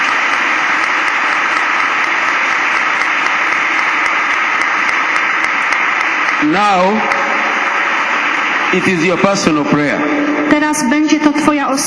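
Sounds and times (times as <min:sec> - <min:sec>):
audience clapping: 0:00.0 - 0:08.8
speech: 0:06.4 - 0:07.2, 0:08.7 - 0:11.8.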